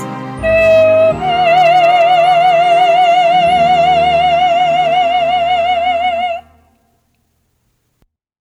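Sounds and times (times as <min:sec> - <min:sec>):
vocal in the key of E flat: 0:00.4 - 0:06.6.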